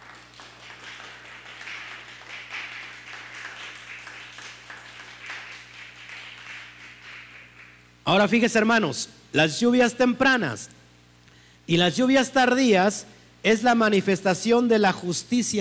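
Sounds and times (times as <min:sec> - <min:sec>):
audience applause: 0:00.0 - 0:07.8
speech: 0:08.1 - 0:10.8, 0:11.7 - 0:15.5.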